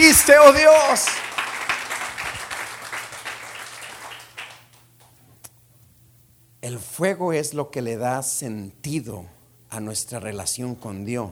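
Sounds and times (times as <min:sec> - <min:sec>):
crowd applause: 0:00.0 - 0:04.8
speech: 0:00.1 - 0:01.3, 0:06.6 - 0:11.3.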